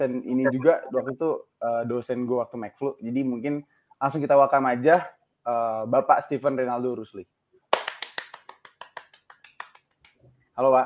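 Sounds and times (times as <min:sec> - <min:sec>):
speech: 0:00.0 - 0:07.3, 0:10.6 - 0:10.8
hand clapping: 0:07.7 - 0:10.2.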